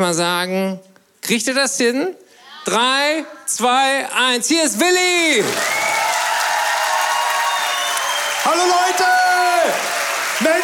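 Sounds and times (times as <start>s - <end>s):
speech: 0.0s - 5.8s, 8.4s - 9.1s
faint cheers: 5.4s - 10.6s
large audience loud sustained applause: 5.4s - 10.6s.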